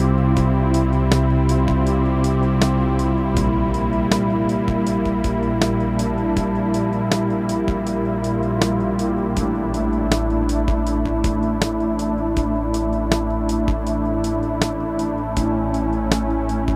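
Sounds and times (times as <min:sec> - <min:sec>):
drum track: 0:00.0 - 0:16.7.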